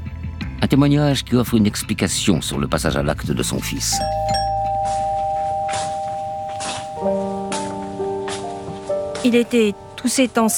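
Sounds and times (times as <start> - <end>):
speech: 0.7 - 4.4, 9.3 - 10.5
doorbell chiming: 3.9 - 10.2.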